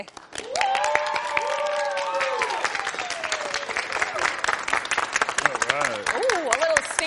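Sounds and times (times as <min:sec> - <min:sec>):
audience applause at the Hall at Patriot Place: 0:00.0 - 0:07.0.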